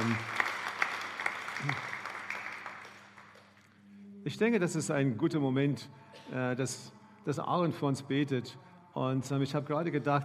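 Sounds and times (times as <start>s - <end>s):
audience applause: 0.0s - 3.6s
speech: 4.3s - 10.2s.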